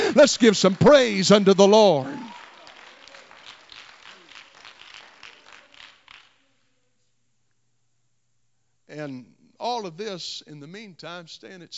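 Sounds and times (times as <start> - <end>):
audience clapping hands: 0.0 - 6.5
speech: 0.2 - 2.3, 9.0 - 11.7.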